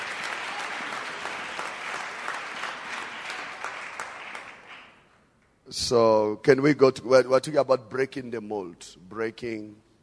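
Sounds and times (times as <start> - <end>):
audience clapping: 0.0 - 5.2
speech: 5.7 - 9.9.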